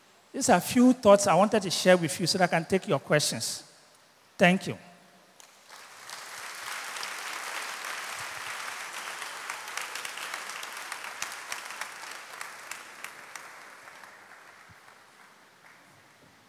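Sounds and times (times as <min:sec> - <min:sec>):
speech: 0:00.4 - 0:03.7, 0:04.4 - 0:04.9
audience applause: 0:05.6 - 0:16.0.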